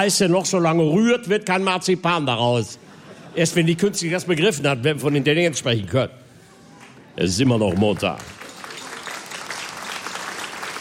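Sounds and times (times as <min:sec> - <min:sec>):
speech: 0:00.0 - 0:06.2, 0:07.2 - 0:08.4
audience clapping: 0:06.8 - 0:10.7.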